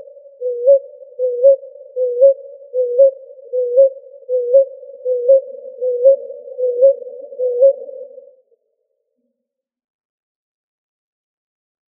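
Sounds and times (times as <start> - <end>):
ruddy ground dove cooing in Arizona: 0.0 - 8.3.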